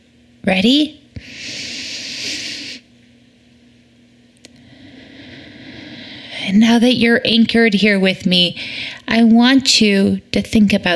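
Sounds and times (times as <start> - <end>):
faint low hum: 0.0 - 10.9
speech: 0.4 - 1.0, 6.6 - 10.9
deep breath: 1.2 - 2.9, 4.5 - 6.5, 8.6 - 9.1.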